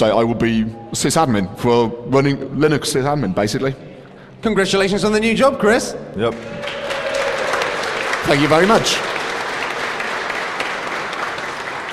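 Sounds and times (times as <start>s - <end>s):
speech: 0.0s - 6.9s, 8.2s - 9.1s
crowd of people clapping: 6.2s - 11.9s.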